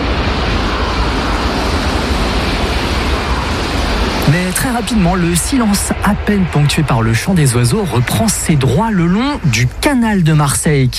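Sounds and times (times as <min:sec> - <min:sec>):
high-speed TGV train passing: 0:00.0 - 0:10.9
speech: 0:04.8 - 0:10.9.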